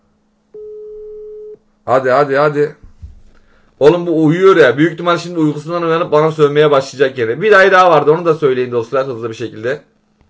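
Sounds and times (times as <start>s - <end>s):
telephone call tone while calling someone: 0.6s - 1.6s
speech: 1.8s - 2.8s, 3.8s - 9.9s.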